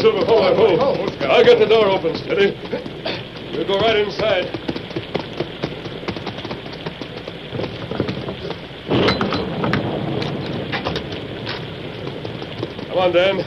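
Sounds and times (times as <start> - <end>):
speech: 0.0 - 2.9, 3.5 - 4.6, 13.0 - 13.4
heavy rain: 0.0 - 13.4
thunder: 8.9 - 13.4.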